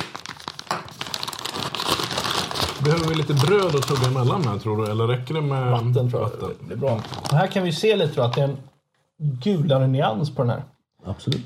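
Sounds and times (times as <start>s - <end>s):
cheese package plastic being crumpled and torn open: 0.0s - 5.2s, 6.7s - 8.4s
speech: 2.8s - 11.4s.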